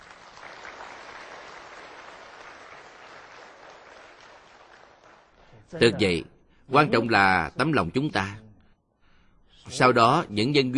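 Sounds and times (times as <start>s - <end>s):
audience applause: 0.0s - 5.5s
speech: 5.7s - 8.4s, 9.6s - 10.7s.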